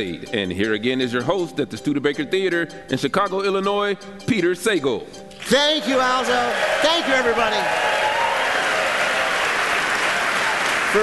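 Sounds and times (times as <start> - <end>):
speech: 0.0 - 8.1
audience applauding at a live radio show at the Studebaker Theater in Chicago, Illinois: 5.4 - 11.0.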